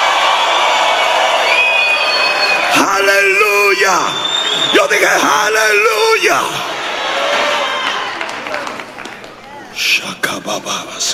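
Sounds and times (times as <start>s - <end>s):
audience shouting and cheering in victory: 0.0s - 9.7s
high whistling tones: 0.2s - 5.9s
speech: 3.8s - 6.7s, 9.8s - 11.1s.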